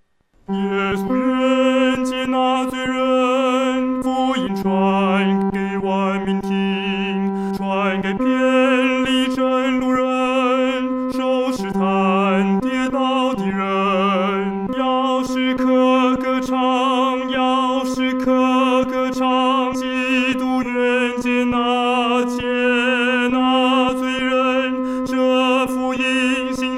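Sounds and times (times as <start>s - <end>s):
solo singing third voice: 0.5s - 26.7s.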